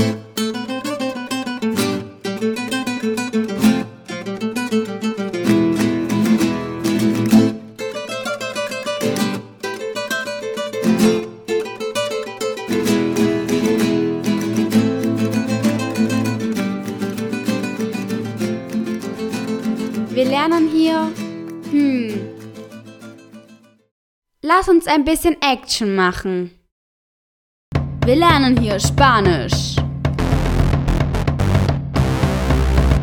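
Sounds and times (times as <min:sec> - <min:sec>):
flamenco music: 0:00.0 - 0:23.7, 0:27.7 - 0:33.0
speech: 0:24.8 - 0:26.6, 0:28.0 - 0:29.8.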